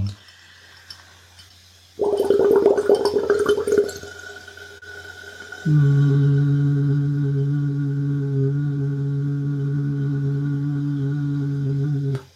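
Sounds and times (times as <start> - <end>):
low hummed voice through the bubbles: 0.0 - 0.2, 5.7 - 12.3
blowing bubbles through a straw into water: 2.0 - 12.3.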